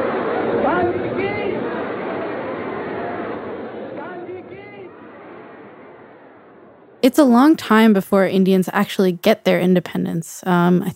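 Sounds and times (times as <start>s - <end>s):
dense crowd of marchers chattering: 0.0s - 7.0s
speech: 7.0s - 10.9s.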